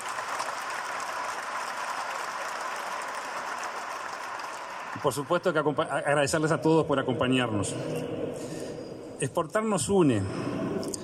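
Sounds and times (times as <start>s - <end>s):
audience applause: 0.0s - 5.8s
speech: 5.0s - 8.6s, 9.2s - 10.5s.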